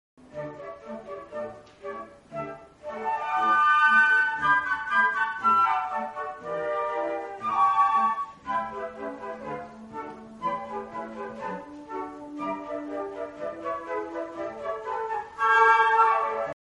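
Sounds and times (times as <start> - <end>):
flute in concert: 0.2 - 16.6.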